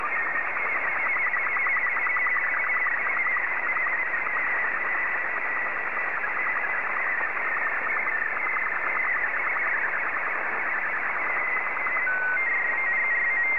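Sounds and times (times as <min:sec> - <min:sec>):
SSTV signal: 0:00.0 - 0:13.5.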